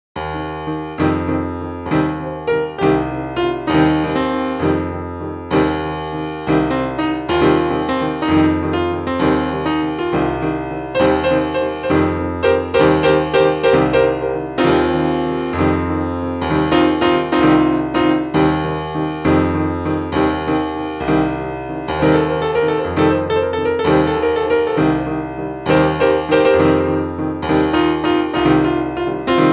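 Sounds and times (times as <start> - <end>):
piano: 0.2 - 29.5.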